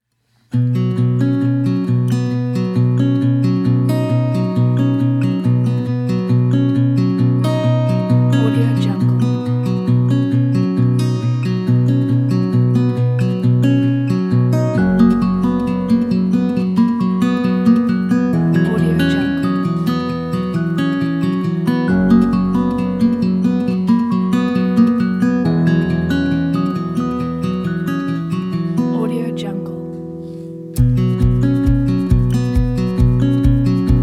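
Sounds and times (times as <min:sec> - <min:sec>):
inspiring guitar music: 0:00.4 - 0:34.0.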